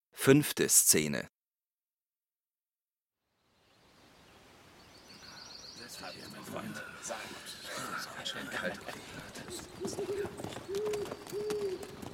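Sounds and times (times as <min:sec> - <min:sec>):
speech: 0:00.2 - 0:01.4
laughter: 0:06.6 - 0:10.3
horses' hooves approaching: 0:08.1 - 0:12.1.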